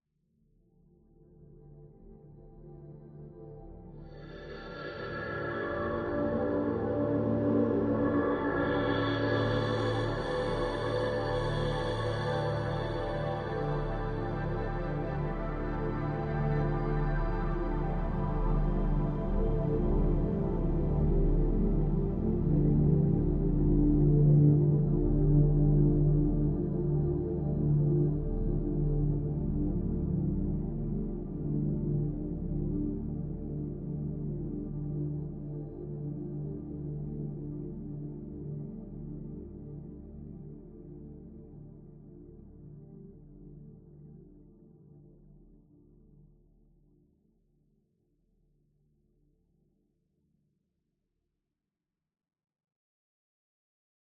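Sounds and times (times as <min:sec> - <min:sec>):
ambient music: 0:02.5 - 0:44.4.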